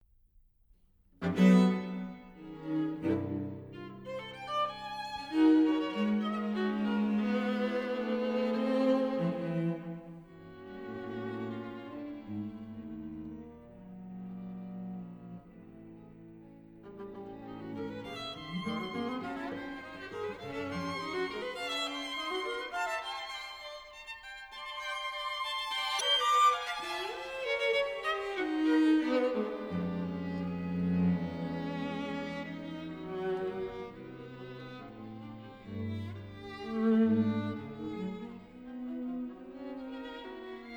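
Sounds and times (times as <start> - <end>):
string quartet playing: 1.2 - 40.7.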